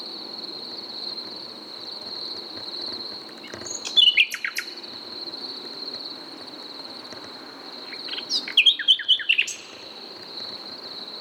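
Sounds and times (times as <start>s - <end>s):
Common nightingale Luscinia megarhynchos song: 8.0s - 9.7s.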